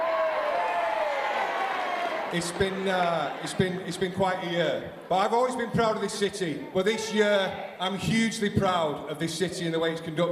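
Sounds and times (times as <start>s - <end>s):
audience cheering: 0.0s - 8.0s
speech: 2.3s - 10.2s.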